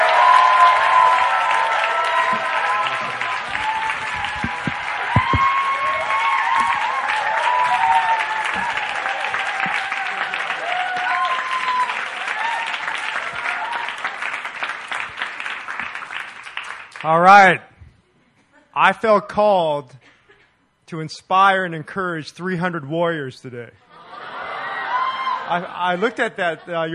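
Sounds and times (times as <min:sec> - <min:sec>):
audience applause welcoming a pastor at a church gathering: 0:00.0 - 0:17.3
speech: 0:18.8 - 0:20.0, 0:20.9 - 0:23.9, 0:25.5 - 0:26.9
laughter: 0:23.9 - 0:26.9.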